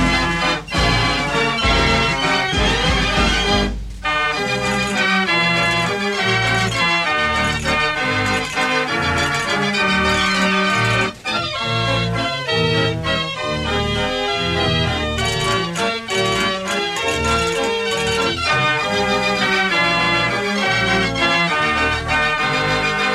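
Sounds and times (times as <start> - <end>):
fair organ playing a lively tune: 0.0 - 23.1.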